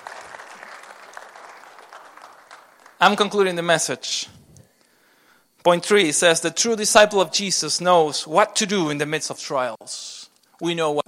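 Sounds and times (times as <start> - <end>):
audience applause for the volunteers: 0.0 - 3.1
speech: 3.0 - 4.4, 5.6 - 11.0.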